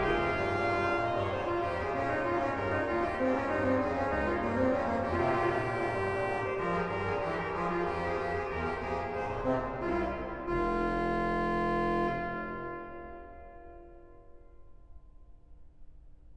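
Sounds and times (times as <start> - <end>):
organ: 0.0 - 12.8.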